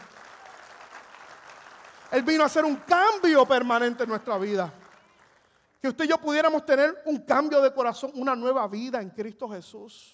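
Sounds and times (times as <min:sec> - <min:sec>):
audience applauding: 0:00.0 - 0:05.7
speech: 0:02.1 - 0:04.8, 0:05.8 - 0:10.1.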